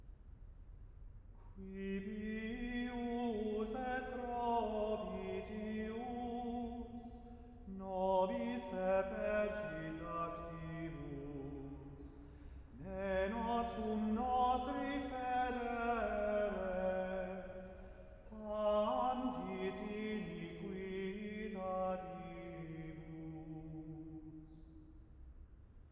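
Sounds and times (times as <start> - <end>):
verse chant: 1.6 - 24.7.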